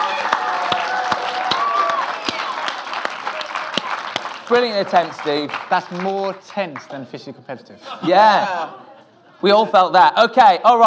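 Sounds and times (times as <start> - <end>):
audience applause: 0.0 - 7.1
speech: 4.5 - 8.8, 9.4 - 10.8
laughter: 7.7 - 10.0.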